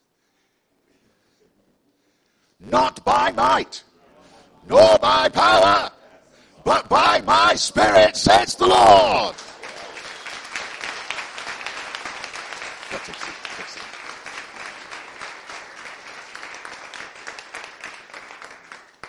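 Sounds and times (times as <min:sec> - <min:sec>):
speech: 0:02.6 - 0:03.9, 0:04.7 - 0:05.9, 0:06.6 - 0:09.4
audience applause: 0:09.3 - 0:19.0.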